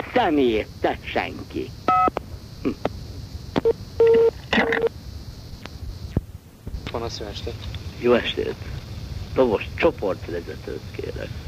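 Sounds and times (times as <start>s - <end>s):
faint hiss: 0.0s - 11.4s
speech: 0.2s - 2.9s, 7.1s - 11.4s
touch-tone beeps of a telephone number being dialed: 1.9s - 2.1s, 4.0s - 4.9s.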